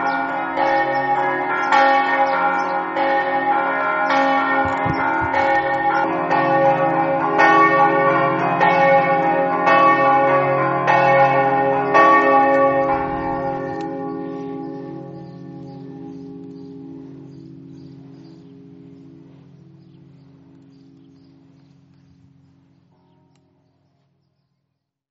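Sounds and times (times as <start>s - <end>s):
bells ringing in Mossa: 0.0s - 23.4s.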